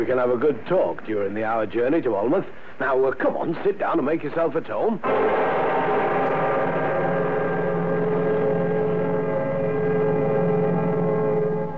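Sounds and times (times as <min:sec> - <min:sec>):
speech: 0:00.0 - 0:06.0
train running along the line: 0:05.0 - 0:11.7.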